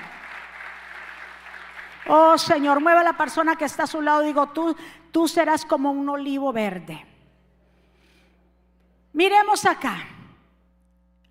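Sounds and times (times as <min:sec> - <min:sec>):
audience applause: 0:00.0 - 0:02.1
speech: 0:02.1 - 0:07.1, 0:09.2 - 0:10.2.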